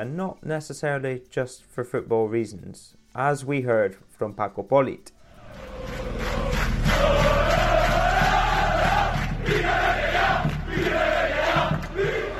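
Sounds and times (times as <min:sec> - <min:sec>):
speech: 0:00.0 - 0:06.1
large crowd of football fans roaring and chanting: 0:05.2 - 0:12.3.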